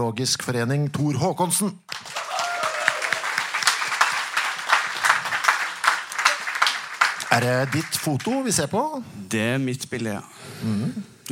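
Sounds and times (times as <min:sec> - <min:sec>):
speech: 0:00.0 - 0:02.2, 0:07.4 - 0:11.2
audience applause for a guest: 0:01.9 - 0:08.8
faint voices and whoops: 0:02.1 - 0:03.4.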